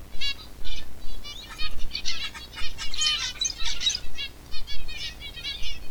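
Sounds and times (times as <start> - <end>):
zebra finch call: 0.3 - 5.8.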